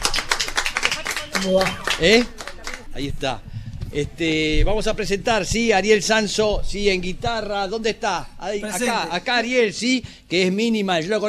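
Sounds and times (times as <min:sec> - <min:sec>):
crowd applauding: 0:00.0 - 0:03.2
speech: 0:01.4 - 0:02.4, 0:03.0 - 0:11.2
sustained voice: 0:08.6 - 0:09.2.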